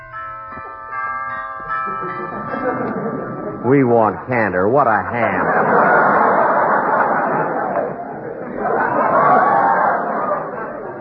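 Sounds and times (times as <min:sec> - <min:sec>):
doorbell ringing: 0:00.0 - 0:06.7
laughter: 0:01.8 - 0:04.0, 0:04.9 - 0:10.9
speech: 0:01.8 - 0:06.2.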